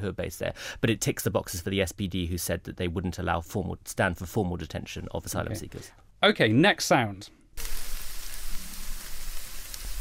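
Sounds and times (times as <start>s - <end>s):
speech: 0.0s - 7.8s
food sizzling on a barbecue grill: 7.6s - 9.9s.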